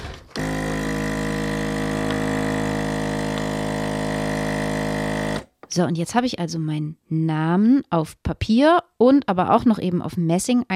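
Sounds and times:
machine sealing something in plastic film: 0:00.0 - 0:05.5
speech: 0:05.7 - 0:10.7.

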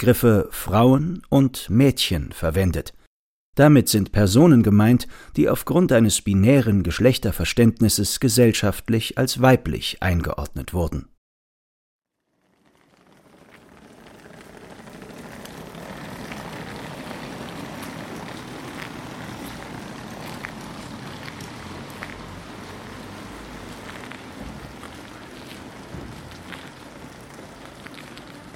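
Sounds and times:
speech: 0:00.0 - 0:03.0, 0:03.6 - 0:11.1
rolling suitcase wheels: 0:12.1 - 0:28.5.

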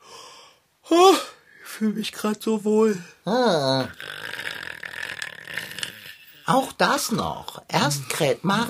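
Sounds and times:
speech: 0:01.8 - 0:04.1, 0:06.5 - 0:08.6
long rasping snore: 0:03.7 - 0:06.6.

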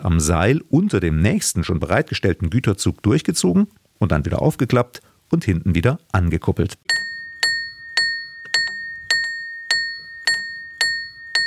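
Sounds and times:
speech: 0:00.1 - 0:07.1
cam-driven warning hammer striking on rope wagon: 0:06.9 - 0:11.4.

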